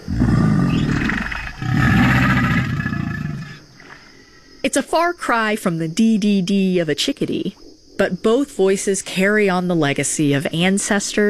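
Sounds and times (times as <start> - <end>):
alligator growling: 0.0 - 3.7
speech: 4.6 - 11.2.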